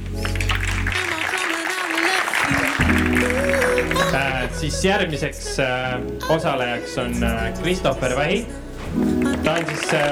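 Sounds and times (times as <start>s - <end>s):
applause: 0.0s - 4.5s, 9.2s - 10.1s
speech: 4.2s - 10.1s.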